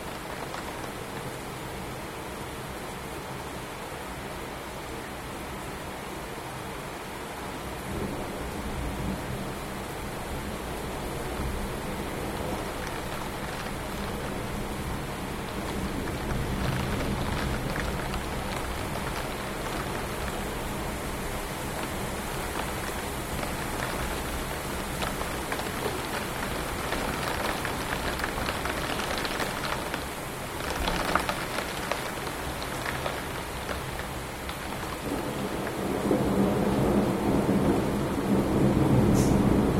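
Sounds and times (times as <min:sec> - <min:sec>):
rain at home: 0:00.0 - 0:39.7
rumbling at home: 0:11.3 - 0:36.8.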